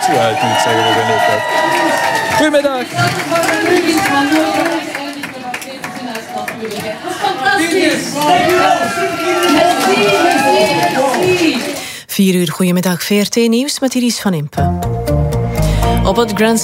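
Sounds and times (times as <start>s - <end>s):
large crowd clapping and cheering: 0.0s - 12.0s
speech: 0.1s - 4.9s, 6.6s - 14.9s, 16.1s - 16.6s.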